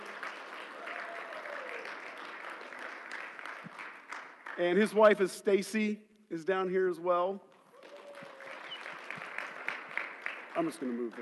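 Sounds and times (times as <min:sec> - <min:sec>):
group of people applauding: 0:00.0 - 0:05.1, 0:07.5 - 0:11.2
speech: 0:04.6 - 0:07.5, 0:10.6 - 0:11.2.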